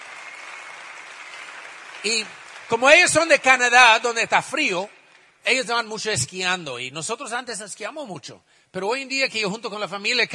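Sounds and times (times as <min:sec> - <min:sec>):
audience applause: 0:00.0 - 0:04.2
speech: 0:02.0 - 0:10.3.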